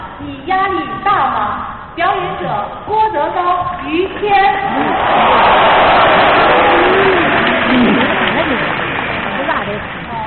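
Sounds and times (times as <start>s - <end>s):
speech: 0.2s - 6.2s
audience applause: 4.7s - 10.2s.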